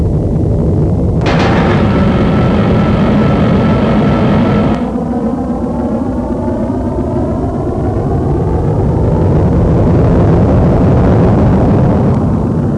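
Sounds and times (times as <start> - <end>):
aircraft taking off: 0.8 - 12.7.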